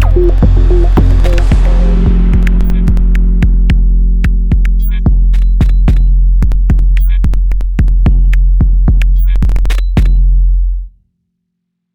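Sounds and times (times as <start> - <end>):
drum and bass music: 0.0 - 10.8.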